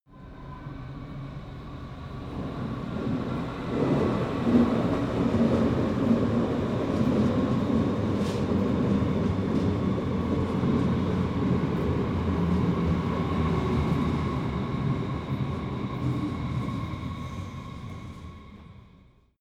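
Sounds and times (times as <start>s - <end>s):
train arriving at underground station: 0.1s - 19.3s.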